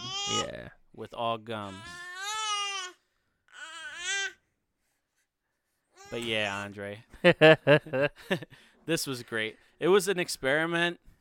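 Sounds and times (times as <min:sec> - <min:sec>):
seven-month-old teething baby girl babbling: 0:00.0 - 0:00.5, 0:01.6 - 0:04.4
speech: 0:00.4 - 0:02.0, 0:06.1 - 0:11.1.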